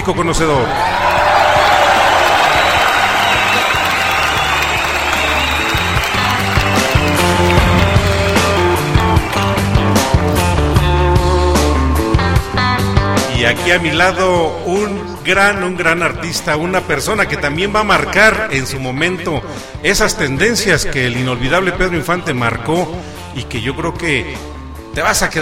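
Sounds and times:
speech: 0.0s - 1.1s, 13.4s - 25.4s
audience applause: 0.7s - 10.5s
band music with a steady beat: 3.0s - 13.4s.

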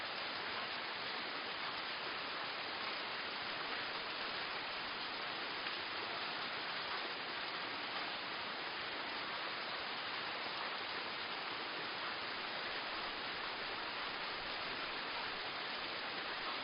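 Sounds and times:
rain hiss: 0.0s - 16.6s.

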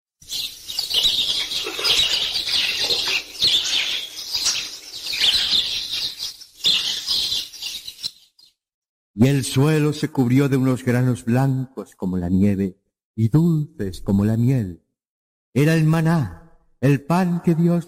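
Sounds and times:
quail chirps: 0.2s - 8.6s
speech: 9.2s - 14.8s, 15.6s - 17.8s.

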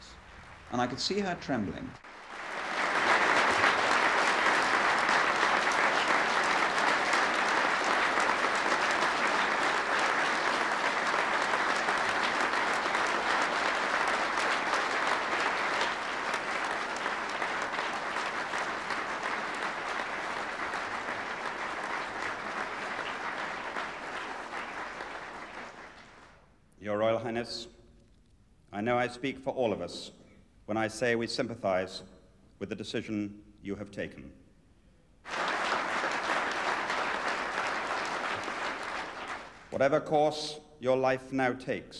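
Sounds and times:
speech: 0.7s - 2.1s, 29.1s - 34.4s, 39.8s - 41.9s
thunderous audience applause: 2.0s - 26.3s, 35.3s - 39.8s.

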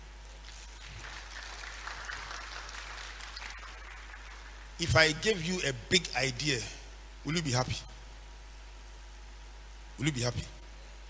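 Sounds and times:
large crowd applause for food workers: 0.5s - 4.8s
speech: 4.8s - 7.9s, 10.0s - 10.6s.

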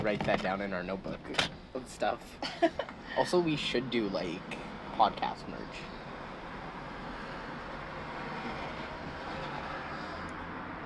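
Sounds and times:
speech: 0.0s - 6.0s
cars driving past outside: 2.6s - 10.8s.

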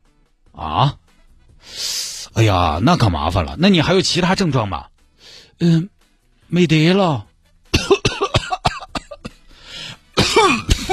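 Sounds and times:
speech: 0.6s - 1.0s, 2.4s - 4.9s, 5.6s - 5.9s, 6.5s - 7.3s
raspy breath: 1.6s - 2.3s, 5.2s - 5.6s, 9.4s - 10.1s
dry coughing fit: 7.7s - 9.5s, 10.1s - 10.9s.

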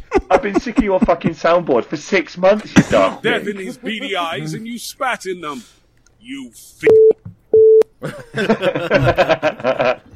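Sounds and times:
laughter: 0.0s - 1.4s, 2.7s - 4.9s, 8.0s - 10.1s
speech: 0.4s - 7.2s, 8.0s - 10.1s
voices talking and snickering: 2.7s - 5.7s
censor beep over swearing: 6.8s - 7.8s.

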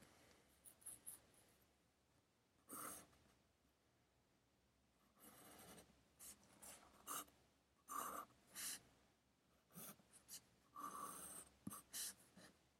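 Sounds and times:
pencil scratching on paper while studying: 2.7s - 3.1s, 5.2s - 8.8s, 9.7s - 12.6s.

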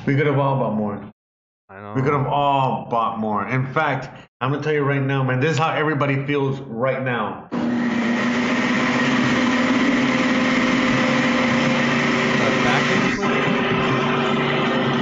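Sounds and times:
speech: 0.0s - 1.1s, 1.7s - 8.1s
blender running: 7.5s - 15.0s.

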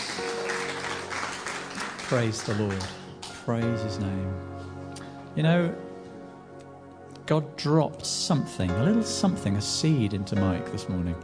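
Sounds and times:
audience clapping: 0.0s - 3.9s
speech: 2.1s - 4.6s, 5.4s - 5.8s, 7.3s - 11.2s.

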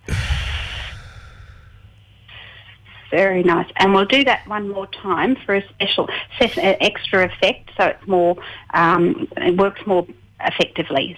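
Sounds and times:
deep breath in and out during a guided breathing exercise: 0.0s - 3.0s, 3.8s - 4.6s, 6.1s - 8.8s
speech: 3.1s - 11.1s.

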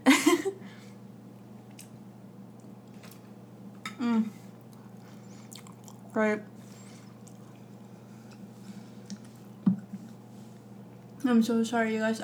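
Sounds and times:
chewing a bite of food: 1.6s - 3.3s, 4.4s - 11.2s
speech: 6.2s - 6.6s, 11.3s - 12.2s.

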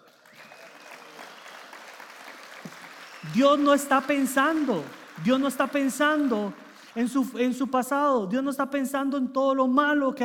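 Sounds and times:
audience applause: 0.0s - 7.4s
speech: 3.2s - 10.2s.

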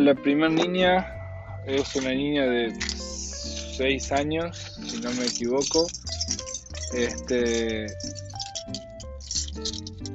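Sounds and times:
speech: 0.0s - 3.0s, 3.8s - 8.8s, 9.6s - 9.8s
musical backing: 0.0s - 10.1s
keys rattling while searching: 1.7s - 10.1s.

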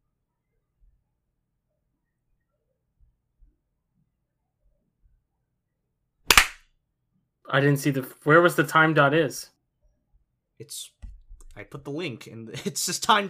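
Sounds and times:
hand clap for sync: 6.3s - 6.6s
speech: 7.5s - 9.6s, 10.6s - 11.0s, 11.6s - 13.2s.

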